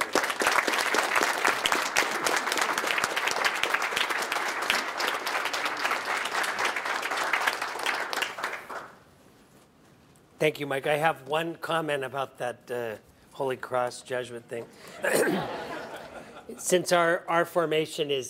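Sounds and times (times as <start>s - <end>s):
audience applause at a Notre Dame event welcoming Father Paul Janowiak: 0.0s - 9.0s
speech: 10.4s - 15.7s, 16.6s - 18.2s
laughter: 14.8s - 16.6s.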